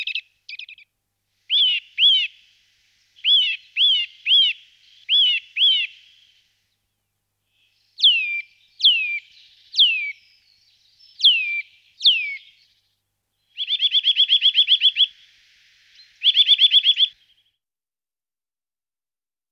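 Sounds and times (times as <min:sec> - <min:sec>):
Eurasian nuthatch whistles: 0:01.5 - 0:02.4, 0:03.2 - 0:06.4, 0:07.6 - 0:12.6, 0:13.6 - 0:15.3, 0:15.9 - 0:17.3.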